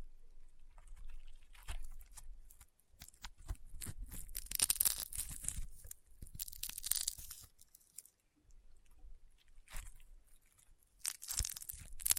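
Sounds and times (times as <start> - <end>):
crunchy popping slime worked: 0.8 - 8.2, 9.5 - 12.1.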